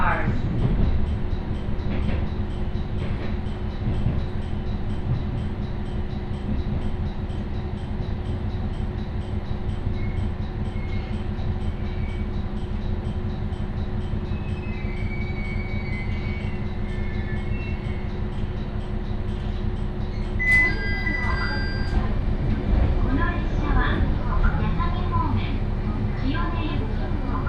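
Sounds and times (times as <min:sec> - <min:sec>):
Ibara Railway train rumbling: 0:00.0 - 0:27.4
high squeal and clatter: 0:14.3 - 0:18.1.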